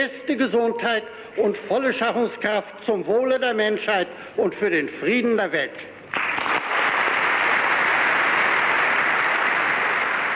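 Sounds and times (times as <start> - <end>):
speech: 0.0 - 5.9
standing audience applauding: 6.1 - 10.3.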